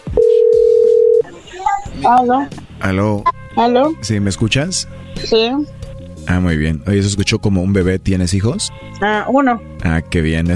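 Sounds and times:
telephone dial tone while calling: 0:00.0 - 0:01.9
speech: 0:02.1 - 0:10.5.

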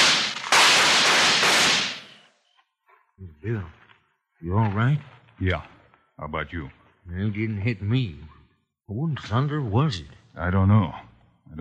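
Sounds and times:
gunshot shooting out a lantern: 0:00.0 - 0:02.3
speech: 0:03.4 - 0:03.8, 0:04.4 - 0:11.5.

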